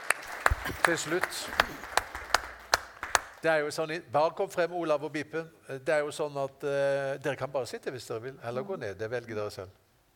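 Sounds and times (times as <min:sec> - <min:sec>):
audience rhythmic clapping: 0:00.0 - 0:03.5
speech: 0:00.8 - 0:02.0, 0:03.4 - 0:09.8.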